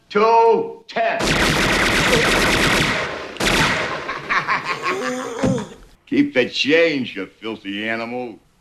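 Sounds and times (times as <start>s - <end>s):
speech: 0.1s - 1.5s, 6.1s - 8.4s
gunfire from a movie scene: 1.2s - 4.2s
sharp blast: 1.2s - 4.2s
laughter: 3.8s - 5.8s.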